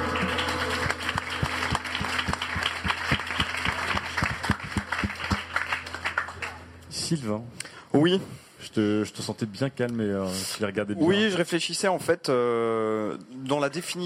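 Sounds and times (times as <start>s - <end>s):
audience applause: 0.0s - 6.7s
speech: 7.1s - 14.0s.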